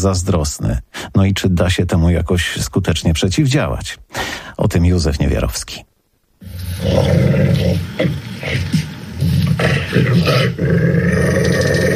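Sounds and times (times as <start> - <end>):
speech: 0.0 - 5.9, 6.8 - 8.8, 9.6 - 11.7
dog growling: 6.8 - 11.9.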